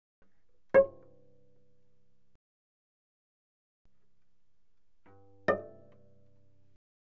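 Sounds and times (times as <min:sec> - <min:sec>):
cello pizzicato notes on the D string: 0:00.6 - 0:01.8, 0:04.6 - 0:06.8.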